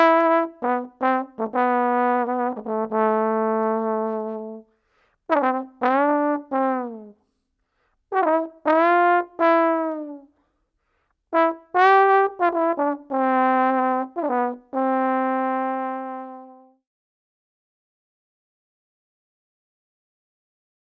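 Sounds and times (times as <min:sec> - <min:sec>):
trombone: 0:00.0 - 0:04.7, 0:05.3 - 0:07.2, 0:08.1 - 0:10.3, 0:11.3 - 0:16.8.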